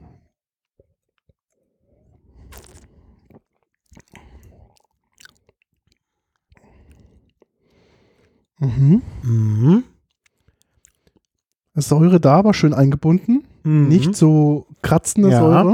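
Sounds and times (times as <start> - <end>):
person sipping spring wine during a tasting: 1.9 - 11.6
speech: 8.6 - 9.8, 11.8 - 15.7.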